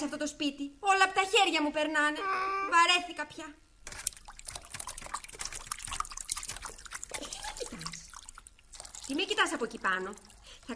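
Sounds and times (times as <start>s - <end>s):
speech: 0.0s - 3.7s, 9.1s - 10.7s
water splashing: 3.8s - 10.7s.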